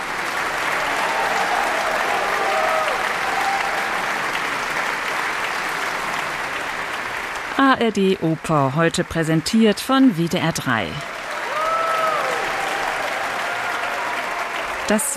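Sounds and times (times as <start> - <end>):
concert audience applauding after an opera: 0.0 - 15.1
speech: 7.6 - 11.1, 14.9 - 15.1.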